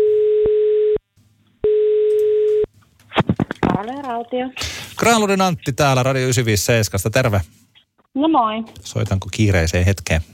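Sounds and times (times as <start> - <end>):
phone ringback tones on an outgoing call: 0.0 - 1.0, 1.6 - 2.7
speech: 3.8 - 7.6, 8.2 - 10.3.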